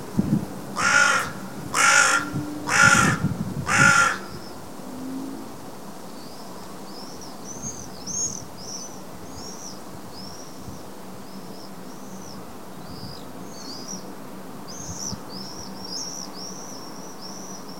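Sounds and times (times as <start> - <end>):
carrion crow Corvus corone cawing: 0.8 - 4.4.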